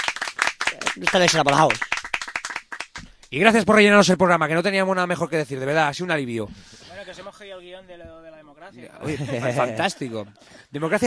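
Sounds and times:
applause: 0.0s - 3.4s
speech: 0.8s - 1.9s, 3.3s - 11.0s
laughter: 8.9s - 11.0s.

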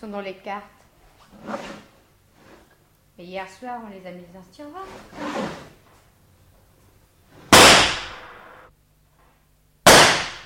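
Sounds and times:
speech: 0.0s - 1.9s, 3.2s - 5.8s
gunshot in the museum: 7.5s - 8.5s, 9.9s - 10.4s.

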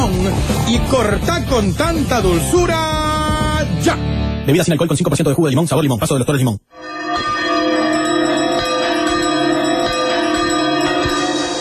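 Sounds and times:
speech: 0.2s - 3.1s, 3.8s - 6.8s
bells ringing: 6.7s - 11.5s.

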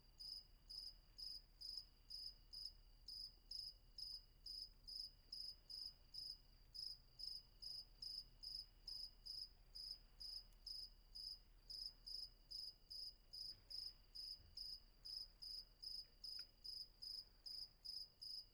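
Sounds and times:
faint continuous insect tone: 0.0s - 18.5s
cricket chirping: 0.2s - 18.5s.

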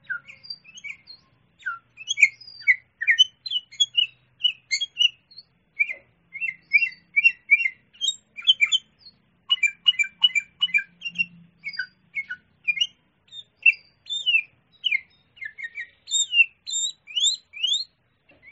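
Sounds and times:
sooty-headed bulbul song: 0.0s - 18.5s.

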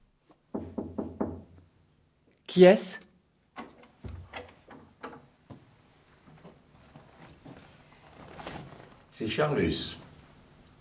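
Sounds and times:
knocking on a door: 0.5s - 1.6s
speech: 2.5s - 3.0s, 9.2s - 10.0s.

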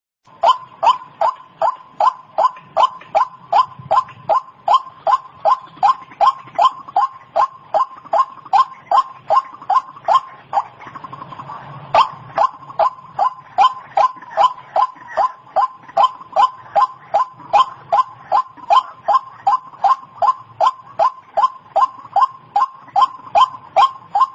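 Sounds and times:
White-breasted Waterhen calls: 0.3s - 24.3s.

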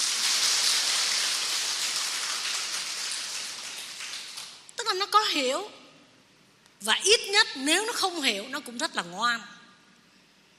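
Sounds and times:
audience applause: 0.0s - 4.6s
speech: 5.0s - 5.8s, 6.8s - 9.6s.

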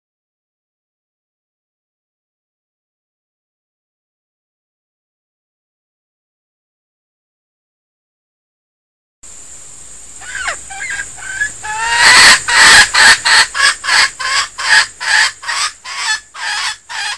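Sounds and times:
female junglefowl decoy bird squeaking and clucking: 10.2s - 17.1s.

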